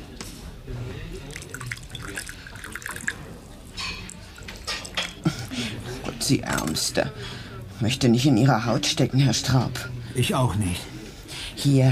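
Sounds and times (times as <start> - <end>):
jasmine tea being poured into cups: 1.2 - 5.3
speech: 6.3 - 10.9, 11.6 - 11.9.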